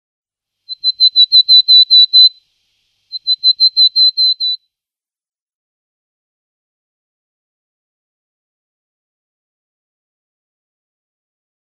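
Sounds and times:
willow tit sharp note and drawn-out level whistles: 0:00.7 - 0:02.4, 0:03.2 - 0:04.6.

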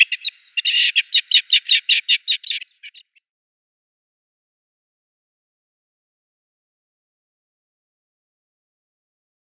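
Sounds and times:
male rock partridge display call: 0:00.0 - 0:03.2.

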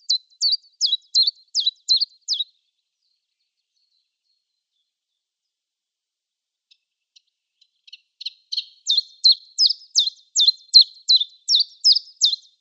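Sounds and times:
common chiffchaff song: 0:00.0 - 0:05.3, 0:06.6 - 0:12.6.

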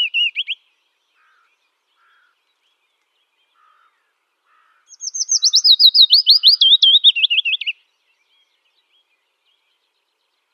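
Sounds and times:
willow warbler singing: 0:00.0 - 0:10.5.

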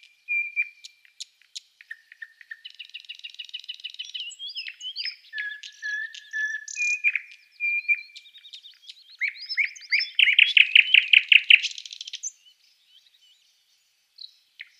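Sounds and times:
Thrush nightingale song: 0:00.0 - 0:14.7.

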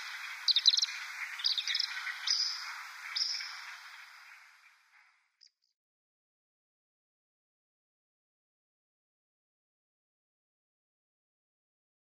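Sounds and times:
Pied Kingfisher calling: 0:00.0 - 0:04.2.

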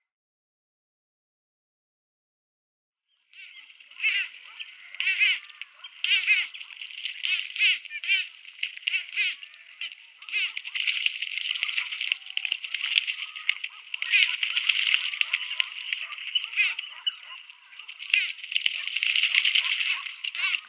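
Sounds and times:
Red-knobbed coot calls: 0:03.4 - 0:20.6.

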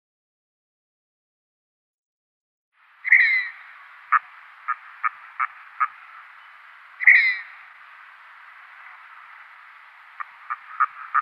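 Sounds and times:
red-breasted merganser calling in display: 0:02.8 - 0:11.2.

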